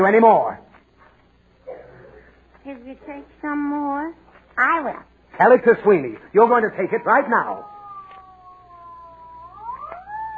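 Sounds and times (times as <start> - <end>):
speech: 0.0 - 0.7, 2.6 - 7.7
ambulance siren: 7.5 - 10.3.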